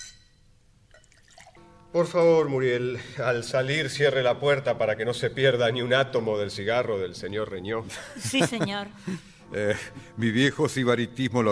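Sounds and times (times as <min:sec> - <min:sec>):
liqueur being poured into glasses: 0:00.9 - 0:01.6
speech: 0:01.9 - 0:11.5
laughter: 0:07.8 - 0:10.0.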